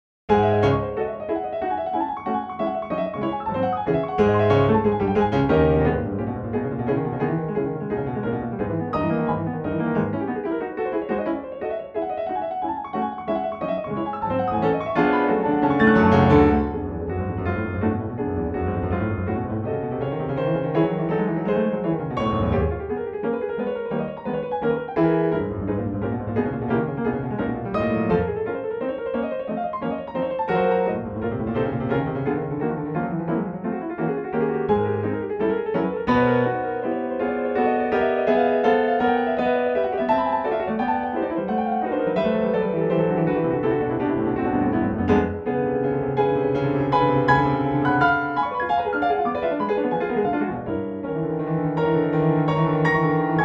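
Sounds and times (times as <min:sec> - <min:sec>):
piano etude on Pianoteq: 0:00.3 - 0:53.4.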